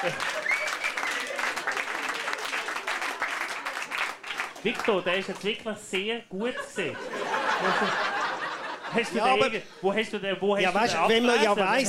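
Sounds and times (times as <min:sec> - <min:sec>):
speech: 0:00.0 - 0:00.3, 0:04.6 - 0:08.1, 0:08.9 - 0:11.8
audience applause: 0:00.0 - 0:05.5
laughter: 0:00.0 - 0:05.7, 0:06.3 - 0:11.8.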